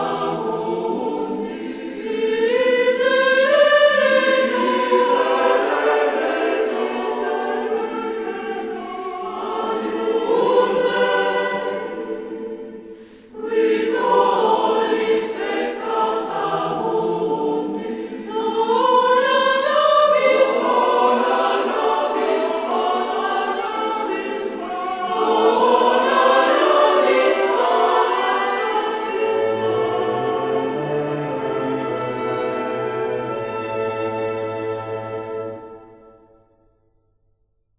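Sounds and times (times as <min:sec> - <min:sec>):
mass setting for choir and orchestra: 0:00.0 - 0:36.4.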